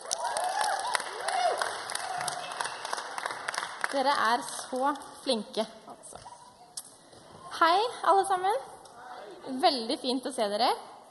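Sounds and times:
applause for the musicians: 0.0 - 4.7
speech: 3.9 - 5.8, 7.6 - 8.7, 9.4 - 10.9.

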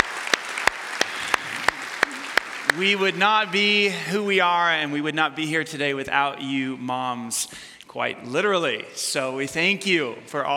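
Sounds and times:
hand claps for mothers on Mother's Day at Emmanuel: 0.0 - 3.2
hiss: 0.0 - 10.5
speech: 2.8 - 10.5.

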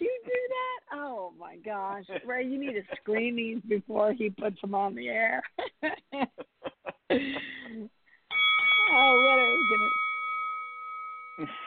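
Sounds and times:
speech: 1.4 - 6.5, 7.1 - 7.9, 11.4 - 11.6
laughter: 2.0 - 3.3, 5.6 - 7.9
kickboxing bell: 8.3 - 11.6.

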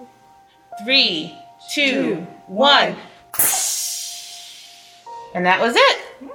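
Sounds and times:
speech: 0.8 - 3.8, 5.3 - 6.3
spray of water before an IV: 3.4 - 5.0.

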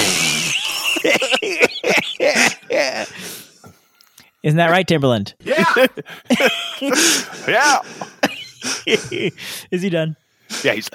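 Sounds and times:
person making mouth fart noises: 0.0 - 0.6
laughter: 0.1 - 3.4, 5.4 - 9.6
speech: 4.4 - 10.9.

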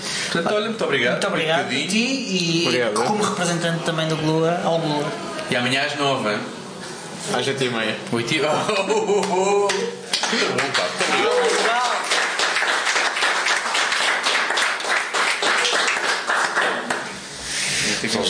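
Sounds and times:
speech: 0.3 - 6.6, 7.2 - 11.6
laughter: 8.5 - 11.8
recorded applause from a sampler: 10.1 - 17.3.

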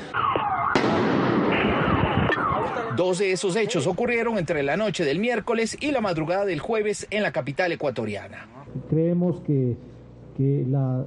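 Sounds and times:
car bomb detonation: 0.2 - 2.7
speech: 3.0 - 11.0.

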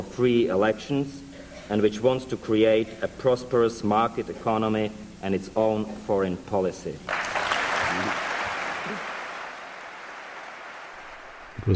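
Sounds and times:
speech: 0.0 - 7.2
thunderous applause: 7.1 - 11.7.

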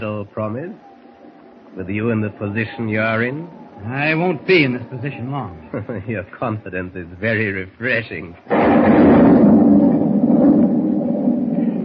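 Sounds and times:
speech: 0.0 - 0.9, 1.8 - 9.5
laughter: 4.2 - 6.5
thunder rumbling as rain begins: 8.5 - 11.8.

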